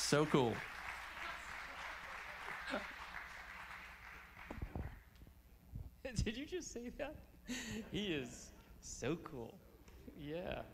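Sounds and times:
round of applause: 0:00.0 - 0:05.0
speech: 0:00.1 - 0:00.7, 0:02.7 - 0:03.0, 0:06.1 - 0:10.7.

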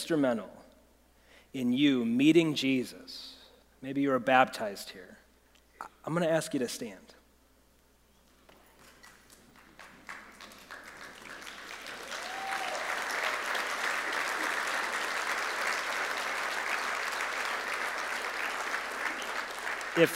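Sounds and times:
speech: 0:00.1 - 0:00.6, 0:01.5 - 0:05.2, 0:05.8 - 0:07.2, 0:20.0 - 0:20.1
audience clapping and applauding: 0:08.5 - 0:20.1.

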